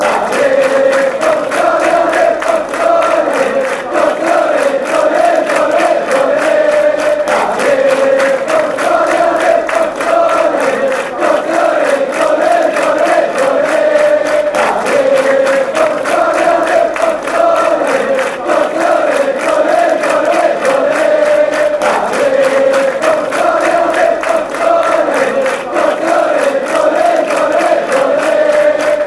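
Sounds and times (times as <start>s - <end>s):
fans chanting: 0.0s - 29.0s.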